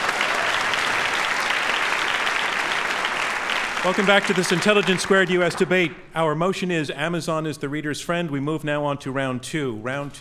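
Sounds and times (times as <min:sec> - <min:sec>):
crowd applauding: 0:00.0 - 0:05.8
speech: 0:03.8 - 0:10.2.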